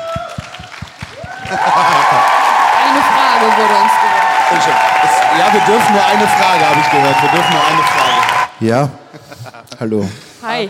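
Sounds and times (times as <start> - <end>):
audience applause: 0.0 - 8.6
laughter: 1.4 - 2.5, 9.0 - 10.2
speech: 1.5 - 2.3, 3.0 - 9.2, 9.8 - 10.6.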